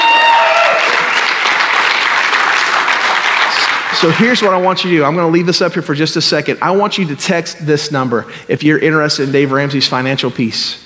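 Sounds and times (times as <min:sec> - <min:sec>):
audience applause: 0:00.0 - 0:04.6
speech: 0:04.0 - 0:10.8.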